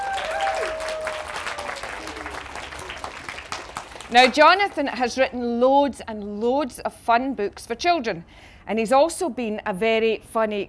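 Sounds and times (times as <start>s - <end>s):
audience applause welcoming a children's author at a library event: 0.0s - 4.7s
speech: 4.1s - 10.6s.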